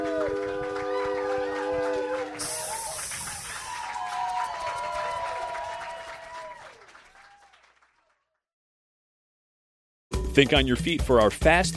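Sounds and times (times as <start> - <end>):
live storytelling show audience applause and cheering: 0.0 - 8.1
speech: 10.4 - 11.7.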